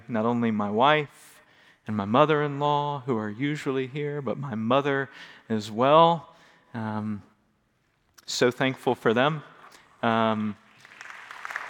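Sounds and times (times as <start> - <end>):
speech: 0.1 - 7.3, 8.3 - 10.6
audience applause: 10.7 - 11.6.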